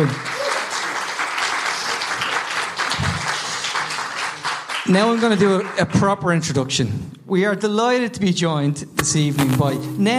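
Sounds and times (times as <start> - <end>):
speech: 0.0 - 0.3, 4.9 - 10.1
audience applause for guests: 0.0 - 5.9.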